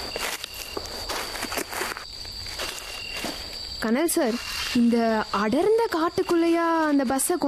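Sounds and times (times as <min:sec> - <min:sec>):
crunching footsteps on rough forest path: 0:00.0 - 0:03.6
speech: 0:03.8 - 0:07.4.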